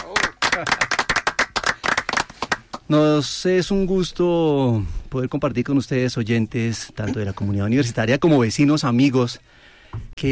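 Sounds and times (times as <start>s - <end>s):
applause for a band: 0.0s - 2.9s
speech: 0.6s - 0.9s, 2.9s - 10.3s.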